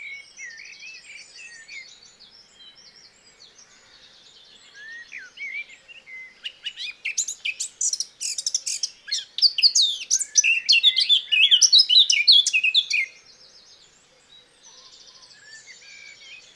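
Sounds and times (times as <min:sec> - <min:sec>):
Eurasian blackcap singing: 0:04.8 - 0:13.1.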